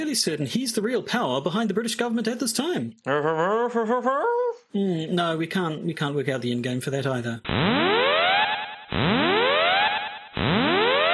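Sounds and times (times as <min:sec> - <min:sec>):
speech: 0:00.0 - 0:07.8
comedic podcast alarm sound effect: 0:07.5 - 0:11.1.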